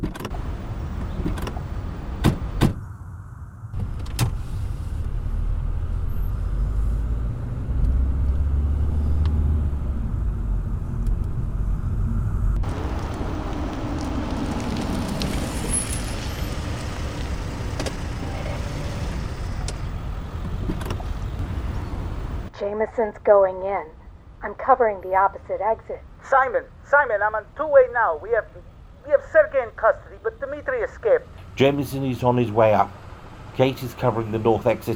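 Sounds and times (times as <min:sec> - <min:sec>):
car engine rumbling while driving around to the back of a building: 0:00.0 - 0:22.5, 0:29.8 - 0:34.9
speech: 0:22.6 - 0:33.0, 0:33.6 - 0:34.9.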